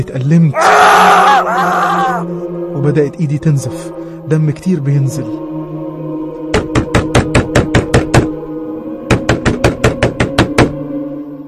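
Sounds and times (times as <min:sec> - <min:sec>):
speech: 0:00.0 - 0:05.5
loud knocking on a door: 0:06.5 - 0:08.3, 0:09.1 - 0:10.8.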